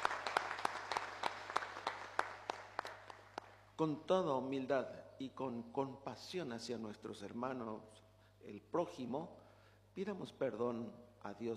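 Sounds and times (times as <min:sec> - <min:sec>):
audience applause: 0:00.0 - 0:03.6
speech: 0:03.8 - 0:09.4, 0:10.0 - 0:11.5.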